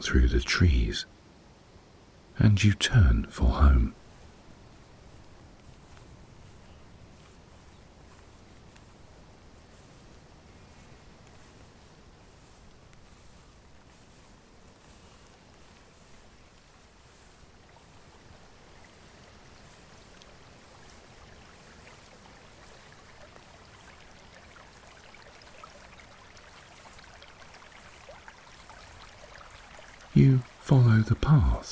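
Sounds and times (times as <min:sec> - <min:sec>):
speech: 0:00.0 - 0:01.2, 0:02.4 - 0:04.0, 0:30.7 - 0:31.6
small stream babbling: 0:00.0 - 0:31.6.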